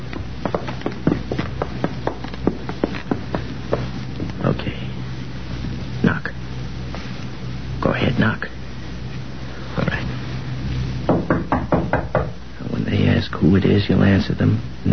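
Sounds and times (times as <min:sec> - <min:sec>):
low steady hum: 0:00.0 - 0:14.9
knocking on a door: 0:11.1 - 0:12.4
speech: 0:14.2 - 0:14.9.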